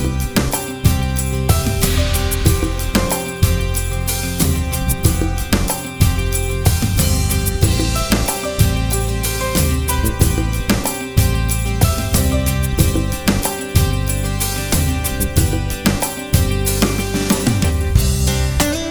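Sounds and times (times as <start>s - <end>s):
live band playing: 0.0s - 18.9s.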